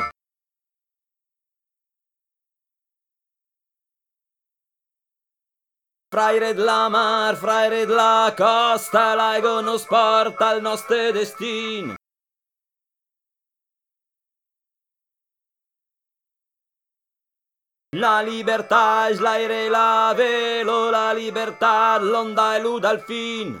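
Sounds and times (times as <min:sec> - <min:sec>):
tenor singing: 0:06.1 - 0:12.0, 0:18.0 - 0:23.5.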